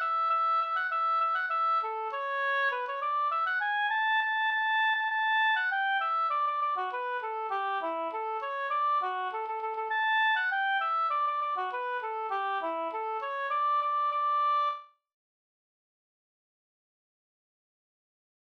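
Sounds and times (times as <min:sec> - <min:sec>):
polka music: 0:00.0 - 0:14.8.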